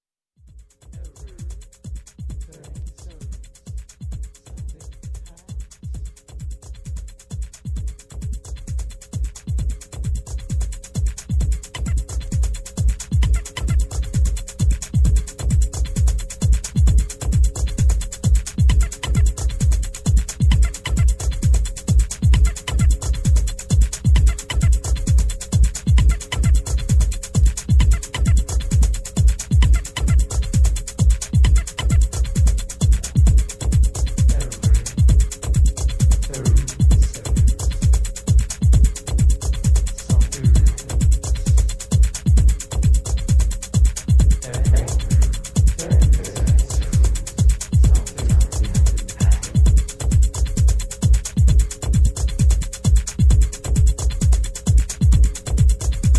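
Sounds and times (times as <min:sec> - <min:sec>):
tribal tech house mix: 0:00.4 - 0:56.1.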